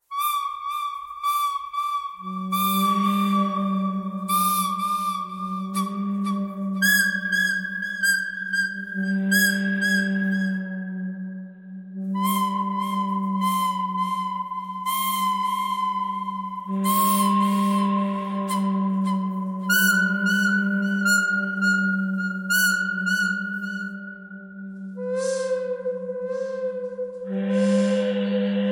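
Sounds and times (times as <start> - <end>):
pentatonic melody: 0.0 - 28.7.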